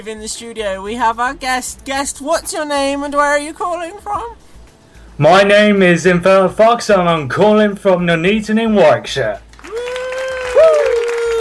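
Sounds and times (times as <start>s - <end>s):
speech: 0.0s - 4.5s, 5.2s - 9.4s
mild clapping from audience: 9.4s - 11.3s.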